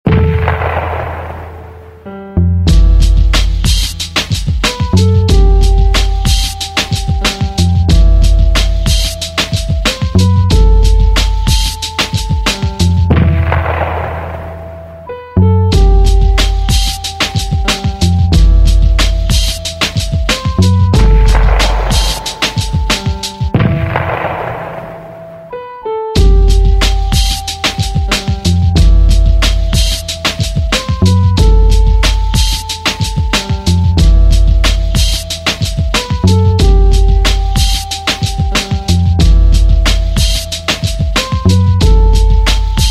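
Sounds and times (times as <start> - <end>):
instrumental music: 0.1 - 42.8.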